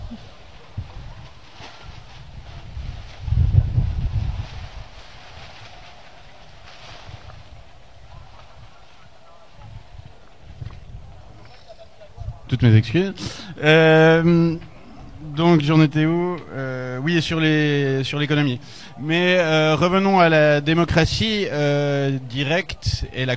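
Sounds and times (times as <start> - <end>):
steady quieter hiss: 0.0 - 23.3
strong gust of wind buffeting the microphone: 0.0 - 23.3
speech: 12.5 - 14.7, 15.4 - 23.3.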